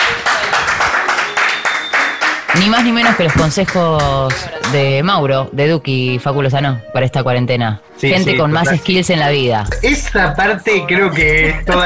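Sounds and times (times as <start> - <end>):
applause: 0.0 - 4.9
speech: 2.6 - 11.8.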